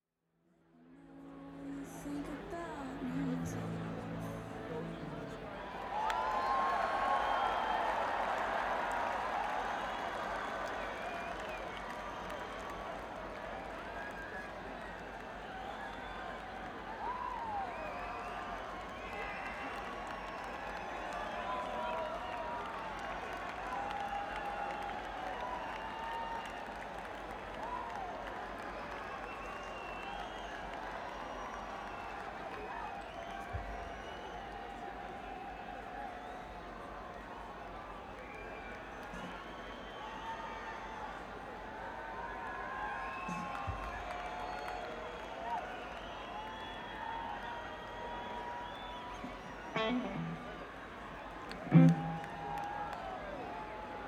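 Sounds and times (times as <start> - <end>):
crowd: 0.7 - 54.0.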